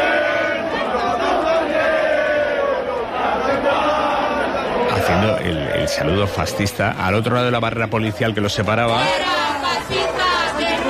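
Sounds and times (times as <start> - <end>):
large crowd singing a song in unison: 0.0 - 10.8
speech: 5.2 - 10.0.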